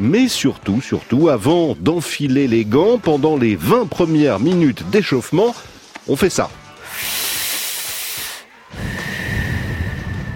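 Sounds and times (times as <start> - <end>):
speech: 0.0 - 7.2
deep inhaling on a cannabis joint: 6.8 - 10.3.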